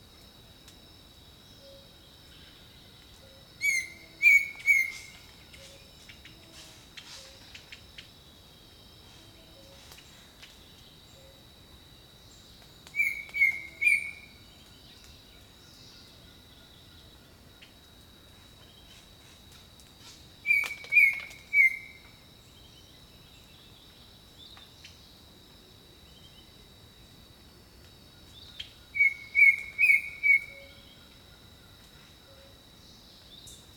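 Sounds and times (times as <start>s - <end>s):
insect drone: 0.0s - 33.7s
bird whistles: 3.6s - 5.1s, 13.0s - 14.2s, 20.5s - 21.9s, 29.0s - 30.7s.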